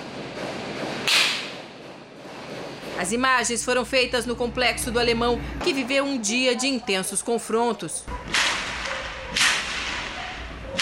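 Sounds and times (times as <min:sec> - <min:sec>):
gunshot fired in a street: 0:01.0 - 0:01.6, 0:08.3 - 0:10.7
speech: 0:03.0 - 0:08.4.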